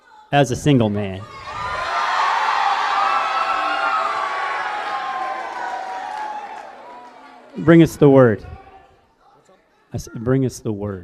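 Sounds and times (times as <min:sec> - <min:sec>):
speech: 0:00.3 - 0:01.4, 0:07.6 - 0:08.6, 0:09.9 - 0:11.0
crowd cheering: 0:01.2 - 0:09.0.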